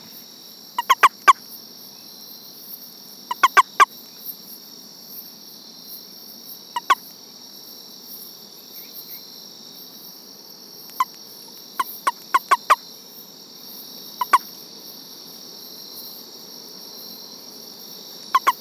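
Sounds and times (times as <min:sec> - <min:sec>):
frog calls of sharp knocking clicks: 0:00.8 - 0:01.4, 0:03.3 - 0:03.9, 0:06.8 - 0:07.0, 0:10.9 - 0:11.2, 0:11.8 - 0:12.8, 0:14.2 - 0:14.5, 0:18.3 - 0:18.5.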